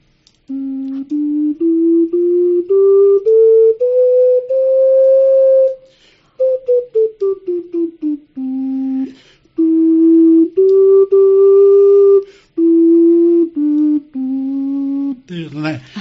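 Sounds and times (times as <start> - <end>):
low breathy ceramic wind instrument melody: 0.5 - 15.7.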